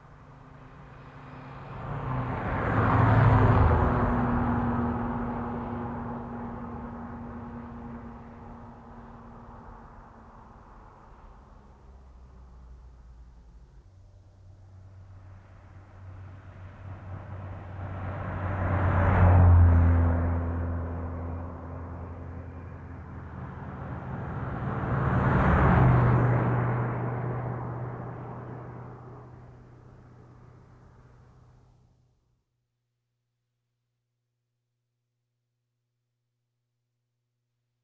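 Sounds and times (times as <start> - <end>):
cars passing on a highway: 0.0 - 12.8, 14.9 - 31.8.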